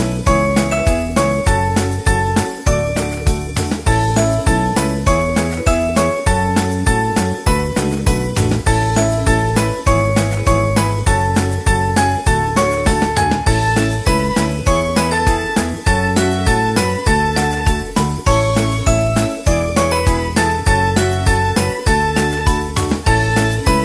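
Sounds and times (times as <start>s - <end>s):
happy upbeat ukulele background music: 0.0s - 23.8s.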